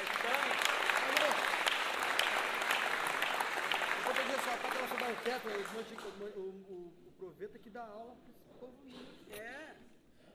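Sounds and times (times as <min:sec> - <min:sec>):
audience applause: 0:00.0 - 0:06.3
speech: 0:05.1 - 0:09.8.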